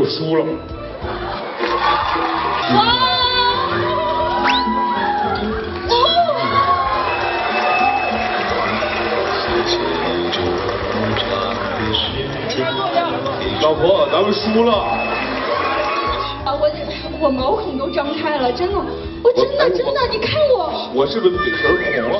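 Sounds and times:
speech: 0.1s - 3.2s, 13.6s - 15.2s, 17.2s - 22.1s
audience continuously applauding and cheering: 0.6s - 17.2s.

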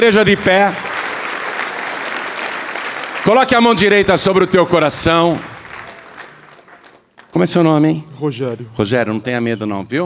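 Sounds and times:
speech: 0.0s - 0.8s, 3.2s - 5.5s, 7.4s - 10.0s
audience applauding: 0.0s - 7.4s.

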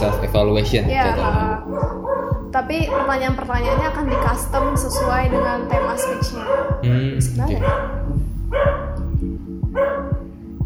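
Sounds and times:
dog barking: 0.0s - 0.4s, 1.7s - 6.8s, 7.5s - 8.9s, 9.8s - 10.2s
speech: 0.0s - 8.8s.

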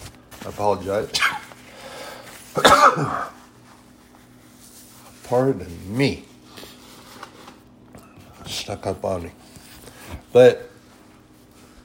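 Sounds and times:
speech: 0.4s - 1.3s, 2.6s - 3.4s, 5.3s - 6.3s, 8.7s - 9.4s, 10.3s - 10.7s
person sneezing: 1.1s - 3.5s.

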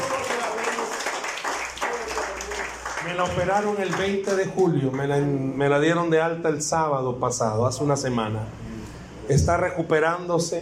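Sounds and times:
audience applause: 0.0s - 5.0s
speech: 3.1s - 8.6s, 9.3s - 10.5s.

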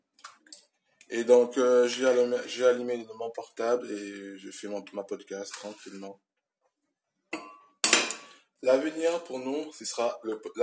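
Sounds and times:
speech: 1.1s - 6.3s, 8.6s - 10.6s
metal utensils clinking against a pan or bowl while preparing an omelette: 7.4s - 8.3s.

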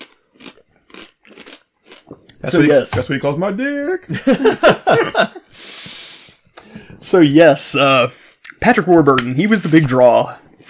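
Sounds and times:
person sipping and swallowing an energy drink: 0.0s - 2.6s
speech: 2.4s - 5.4s, 7.0s - 10.6s
laughter: 4.0s - 5.6s.

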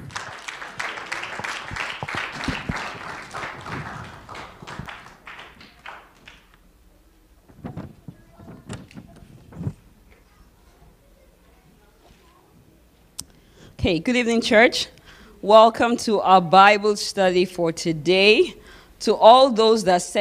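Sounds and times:
audience clapping: 0.0s - 6.6s
speech: 13.8s - 20.1s.

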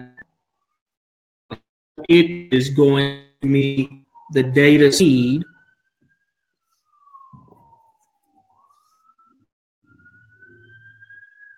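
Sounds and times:
speech: 2.1s - 5.5s
fire engine wailing siren: 3.2s - 11.5s.

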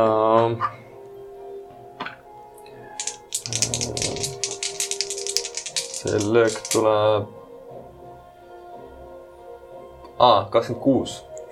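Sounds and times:
speech: 0.0s - 0.8s, 6.0s - 7.4s, 10.2s - 11.3s
dice rattling: 3.0s - 6.9s.

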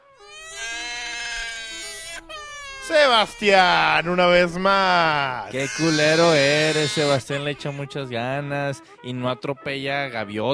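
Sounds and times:
baby crying sound effect: 0.0s - 7.8s
speech: 2.9s - 10.5s.

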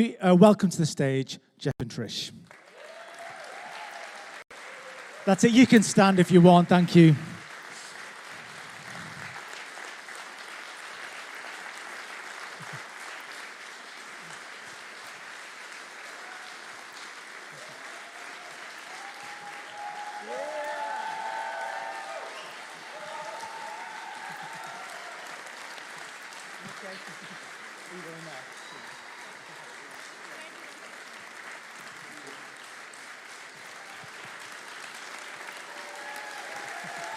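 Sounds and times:
speech: 0.0s - 2.5s, 5.2s - 7.3s
audience applause: 2.5s - 37.1s
indistinct voices and cheers: 2.6s - 7.4s, 16.1s - 16.7s, 17.5s - 26.0s, 27.9s - 30.8s, 35.1s - 37.1s.

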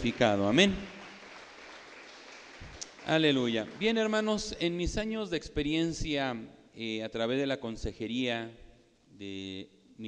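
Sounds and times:
speech: 0.0s - 0.9s, 3.1s - 8.6s, 9.2s - 10.0s
audience clapping hands: 0.0s - 4.6s.

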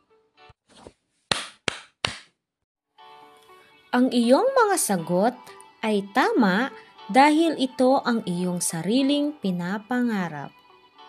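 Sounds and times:
hand claps: 1.3s - 2.3s
speech: 3.9s - 10.6s.

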